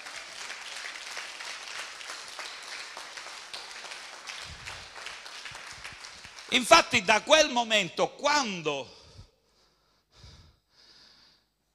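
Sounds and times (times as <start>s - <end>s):
audience applause: 0.0s - 7.2s
speech: 6.5s - 9.0s.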